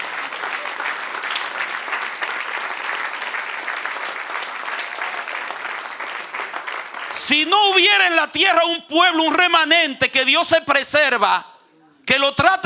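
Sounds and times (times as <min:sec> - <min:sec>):
audience applause: 0:00.0 - 0:07.3
speech: 0:07.3 - 0:11.5, 0:12.1 - 0:12.6.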